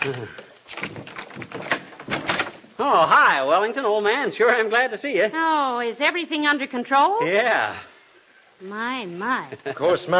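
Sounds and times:
speech: 0.0s - 1.0s, 2.8s - 7.9s, 8.6s - 10.1s
door being unlocked and opened with latch rattles: 0.7s - 2.6s.

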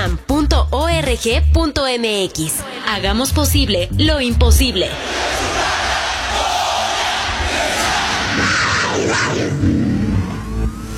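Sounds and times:
speech: 0.1s - 5.7s, 9.0s - 9.9s
large crowd shouting a cheer: 4.7s - 9.4s.

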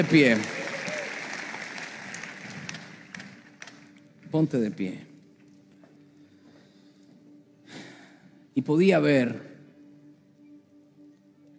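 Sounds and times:
speech: 0.0s - 0.6s, 4.3s - 5.1s, 8.6s - 9.5s
audience applause: 0.0s - 4.1s.

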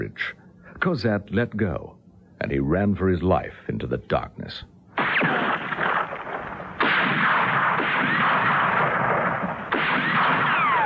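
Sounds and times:
speech: 0.0s - 5.4s
gunfire at a fleeing man in darkness: 5.0s - 10.8s.

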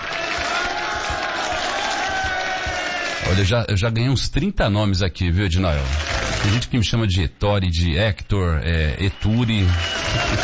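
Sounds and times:
crowd cheering and clapping: 0.0s - 3.4s, 5.7s - 6.8s, 8.7s - 10.4s
speech: 3.3s - 10.4s.

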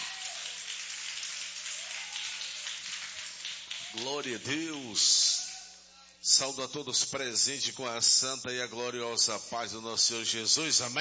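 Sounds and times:
audience applauding: 0.0s - 4.5s
speech: 3.9s - 5.3s, 6.3s - 10.9s.

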